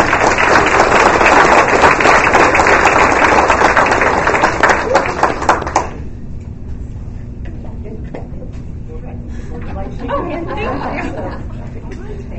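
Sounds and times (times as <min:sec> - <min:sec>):
audience applause: 0:00.0 - 0:06.0
laughter: 0:07.4 - 0:12.3.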